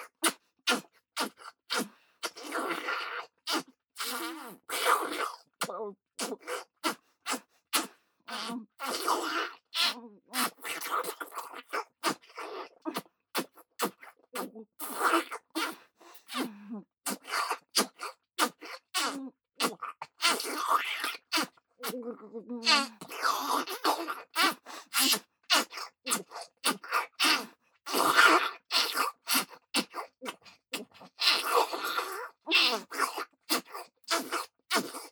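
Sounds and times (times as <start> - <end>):
intense fellatio sounds: 0.3 - 5.4, 6.2 - 22.0, 22.7 - 35.0.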